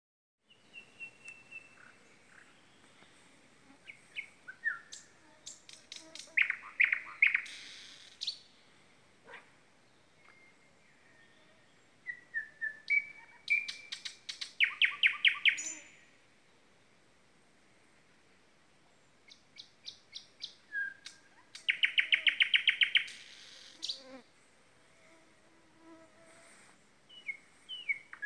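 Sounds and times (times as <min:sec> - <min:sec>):
common nightingale singing: 0:00.5 - 0:02.8, 0:03.9 - 0:08.5, 0:10.2 - 0:16.0, 0:19.3 - 0:24.1, 0:27.1 - 0:28.2.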